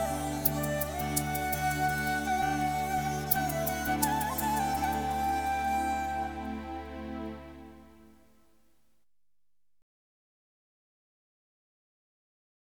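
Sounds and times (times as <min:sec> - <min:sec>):
music: 0:00.0 - 0:08.9.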